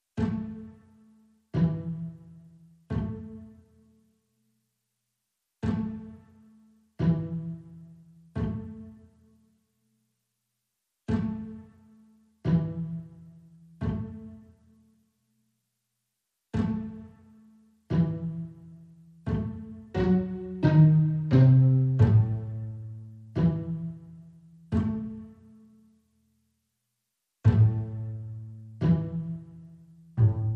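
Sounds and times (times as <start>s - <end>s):
strings: 0.2s - 3.9s, 5.6s - 9.5s, 11.1s - 14.7s, 16.5s - 25.9s, 27.4s - 30.5s.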